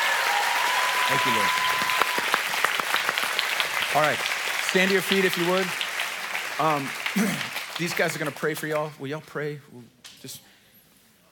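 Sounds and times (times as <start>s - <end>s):
audience cheering and applause: 0.0s - 8.6s
speech: 1.1s - 1.9s, 3.9s - 5.8s, 6.6s - 10.5s.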